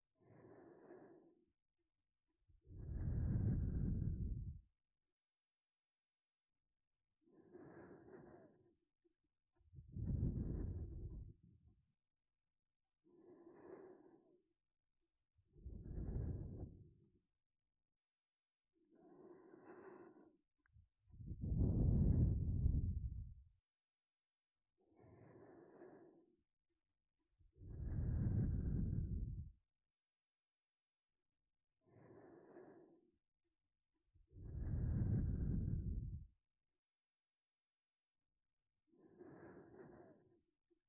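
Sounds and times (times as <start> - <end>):
sleep breathing loop: 0.2 - 1.4, 2.8 - 4.6, 7.3 - 8.8, 9.9 - 11.4, 13.1 - 14.4, 15.6 - 16.8, 18.9 - 20.4, 21.3 - 23.2, 25.0 - 26.2, 27.7 - 29.5, 31.9 - 33.0, 34.4 - 36.3, 39.0 - 40.4.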